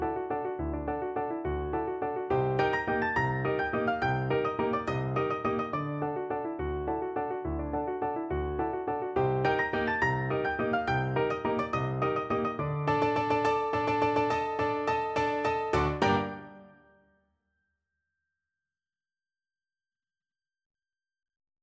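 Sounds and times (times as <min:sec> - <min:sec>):
piano duet: 0:00.0 - 0:17.0.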